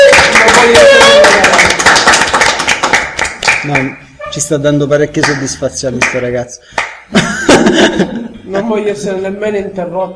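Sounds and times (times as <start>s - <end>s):
crowd applause: 0.0s - 3.9s
speech: 0.6s - 1.0s, 3.7s - 10.1s
laughter: 7.1s - 8.4s.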